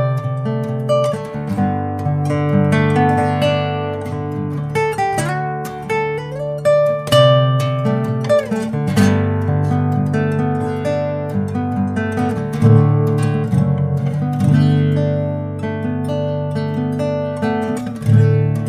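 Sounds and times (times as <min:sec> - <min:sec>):
Indian rosewood crossover guitar playing: 0:00.0 - 0:18.6.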